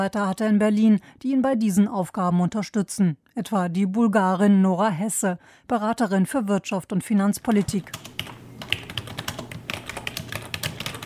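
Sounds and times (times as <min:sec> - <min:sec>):
speech: 0:00.0 - 0:08.7
typing on a computer keyboard: 0:07.5 - 0:11.0.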